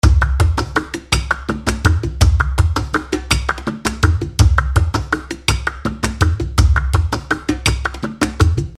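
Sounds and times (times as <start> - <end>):
tanguillos music at 110 BPM: 0.0 - 8.7.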